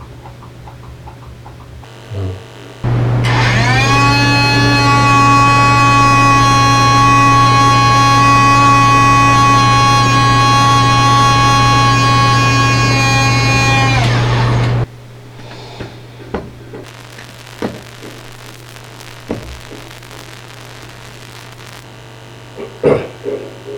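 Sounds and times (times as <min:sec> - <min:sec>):
ambient sounds: 0:02.2 - 0:14.9.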